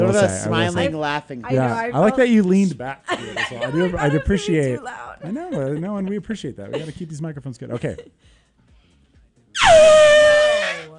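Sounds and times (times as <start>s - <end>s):
speech: 0.1s - 8.4s, 9.6s - 10.3s
laughter: 3.0s - 8.2s
person imitating a horse whinny: 9.6s - 10.9s.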